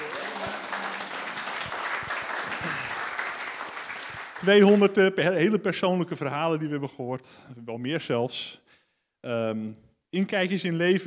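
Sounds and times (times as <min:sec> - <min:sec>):
audience applause: 0:00.0 - 0:05.0
speech: 0:04.4 - 0:08.6, 0:09.2 - 0:11.0.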